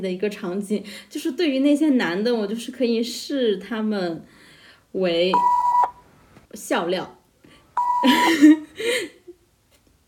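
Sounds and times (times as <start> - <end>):
speech: 0.0 - 5.6, 6.5 - 7.2, 8.0 - 9.2
censor bleep: 5.4 - 6.0, 7.8 - 8.2.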